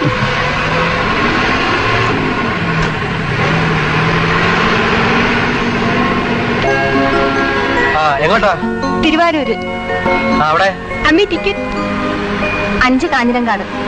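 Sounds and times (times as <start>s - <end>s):
bus engine rumbling as the bus moves off: 0.0s - 13.8s
speech: 8.3s - 11.9s, 12.8s - 13.8s.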